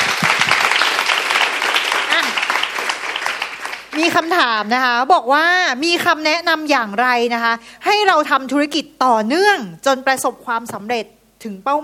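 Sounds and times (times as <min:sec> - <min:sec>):
audience applause: 0:00.0 - 0:04.0
speech: 0:04.0 - 0:11.8.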